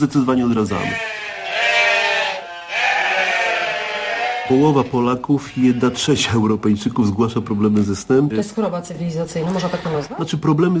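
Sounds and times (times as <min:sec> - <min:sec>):
speech: 0:00.0 - 0:01.2, 0:04.5 - 0:10.7
sheep bleating: 0:00.5 - 0:06.4, 0:09.4 - 0:10.2.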